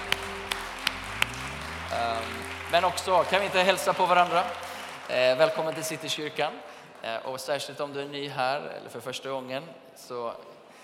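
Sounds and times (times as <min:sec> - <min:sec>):
audience applauding: 0:00.0 - 0:07.7
speech: 0:01.9 - 0:10.5.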